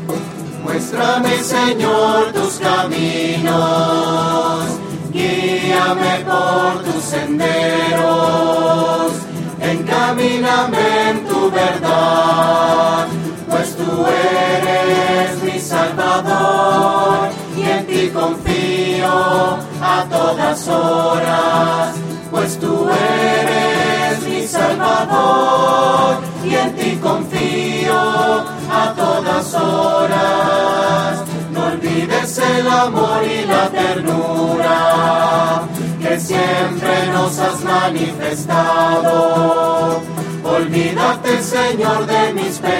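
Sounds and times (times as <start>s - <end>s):
voices: 0.1s - 42.7s.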